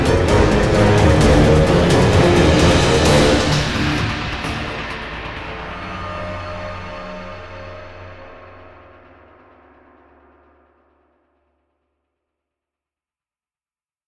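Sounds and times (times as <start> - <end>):
danger alert music: 0.0 - 7.5.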